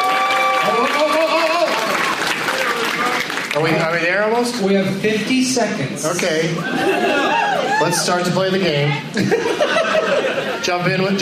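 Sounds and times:
audience applause: 0.0s - 4.0s
speech: 3.6s - 11.2s
laughter: 6.6s - 8.1s, 9.1s - 11.2s.

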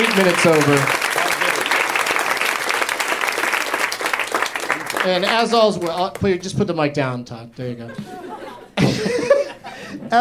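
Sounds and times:
speech: 0.0s - 1.0s, 5.0s - 8.4s
laughter: 0.0s - 2.0s, 7.6s - 10.1s
audience at a live show clapping for the guests: 0.0s - 6.5s.

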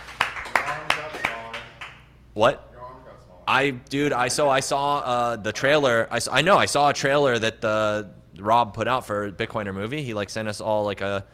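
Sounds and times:
audience hand claps: 0.0s - 2.1s
speech: 2.4s - 2.7s, 3.5s - 11.3s.

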